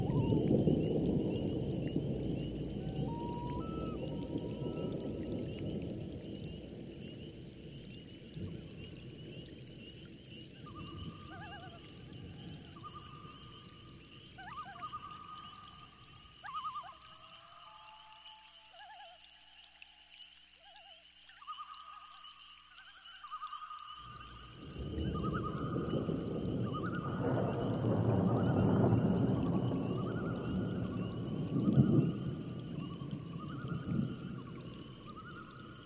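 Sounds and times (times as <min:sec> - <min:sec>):
thunderstorm: 0:00.0 - 0:15.3, 0:24.0 - 0:35.8.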